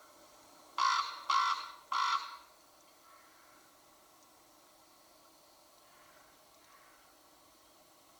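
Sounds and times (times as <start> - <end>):
raven calling: 0.8 - 3.6.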